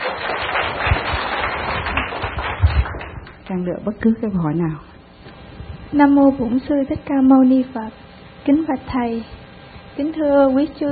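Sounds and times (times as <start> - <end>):
audience applause: 0.0 - 3.4
speech: 3.5 - 4.9, 5.9 - 9.4, 10.0 - 10.8.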